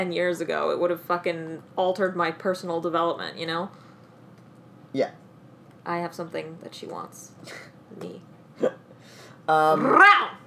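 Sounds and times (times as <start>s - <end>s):
speech: 0.0s - 3.8s, 4.9s - 5.2s, 5.8s - 8.8s, 9.5s - 10.4s
woman making a guttural growl imitating an animal snarl: 9.5s - 10.4s.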